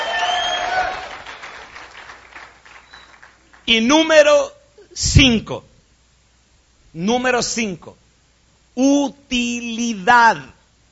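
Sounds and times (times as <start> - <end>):
audience applauding: 0.0 - 3.6
speech: 3.7 - 5.7, 6.9 - 8.0, 8.8 - 10.6.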